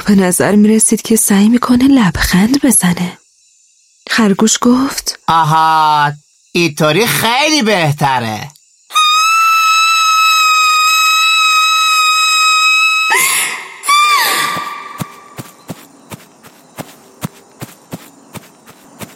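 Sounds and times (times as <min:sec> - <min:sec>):
speech: 0:00.1 - 0:03.2, 0:04.1 - 0:08.6
loud scream: 0:08.9 - 0:15.2
quick light footsteps: 0:14.3 - 0:19.1.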